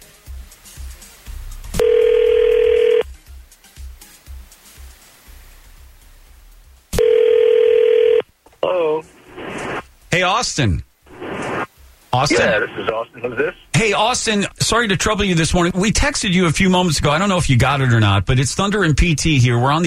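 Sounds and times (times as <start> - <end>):
telephone ring tones: 1.8 - 3.1, 7.0 - 8.2
speech: 10.2 - 10.9, 12.2 - 19.8.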